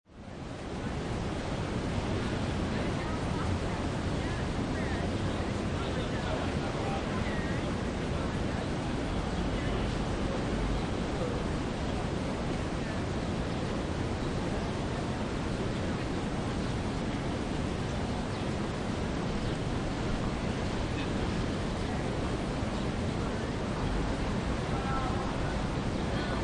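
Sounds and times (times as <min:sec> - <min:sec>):
city park open plaza ambience: 0:00.2 - 0:26.4.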